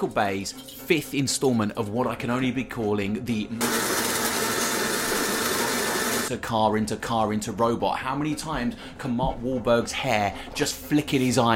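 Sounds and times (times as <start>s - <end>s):
speech: 0.0s - 4.0s, 6.3s - 11.5s
coffee grinder grinding: 3.6s - 6.3s.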